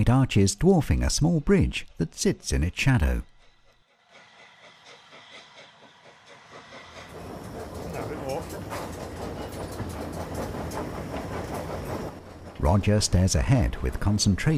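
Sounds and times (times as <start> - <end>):
speech: 0.0 - 3.3, 12.6 - 14.5
steam train crossing a dark red brick viaduct: 3.4 - 14.5.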